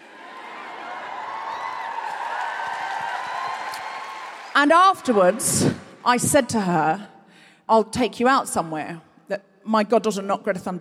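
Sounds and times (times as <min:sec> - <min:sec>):
live audience cheering: 0:00.0 - 0:06.1
whoops and shouts: 0:00.2 - 0:05.8
speech: 0:04.6 - 0:07.1, 0:07.7 - 0:10.7.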